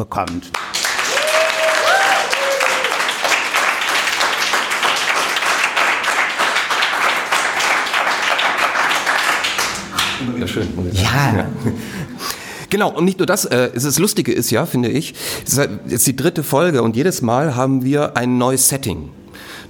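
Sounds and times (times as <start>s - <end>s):
speech: 0.0s - 0.8s, 10.2s - 19.6s
live audience applause: 0.5s - 10.4s
crowd whoops: 0.8s - 5.1s.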